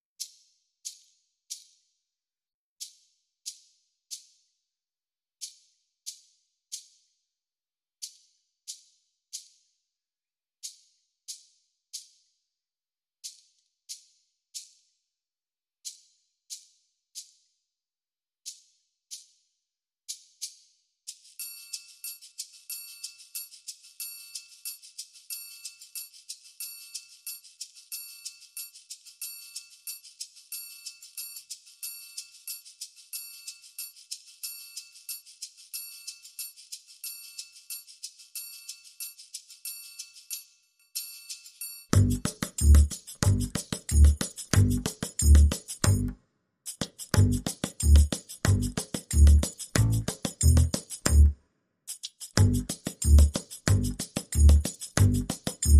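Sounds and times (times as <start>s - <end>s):
drums: 42.0s - 46.1s, 46.7s - 51.3s, 52.3s - 55.7s
bass: 42.0s - 46.2s, 47.1s - 51.4s, 52.4s - 55.7s.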